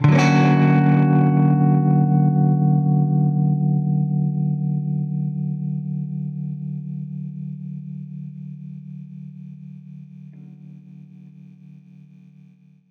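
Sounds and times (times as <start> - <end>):
baritone guitar Bmin9 maj7 chord: 0.0 - 7.0.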